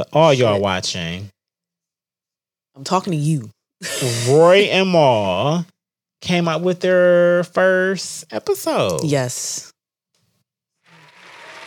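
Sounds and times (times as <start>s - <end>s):
speech: 0.0s - 1.4s, 2.8s - 9.7s
applause sound effect: 11.0s - 11.6s.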